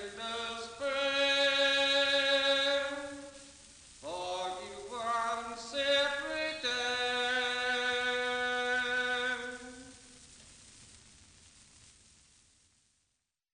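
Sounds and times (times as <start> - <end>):
lavender seller singing: 0.0 - 3.4, 4.0 - 10.0.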